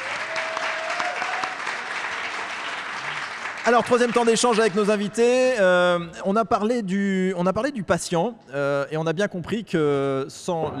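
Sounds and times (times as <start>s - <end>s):
audience applause: 0.0s - 5.0s
speech: 3.6s - 10.7s.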